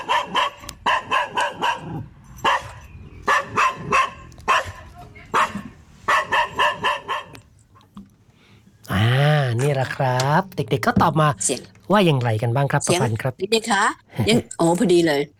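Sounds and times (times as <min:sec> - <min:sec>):
small dog barking: 0:00.0 - 0:07.4
speech: 0:09.8 - 0:15.3.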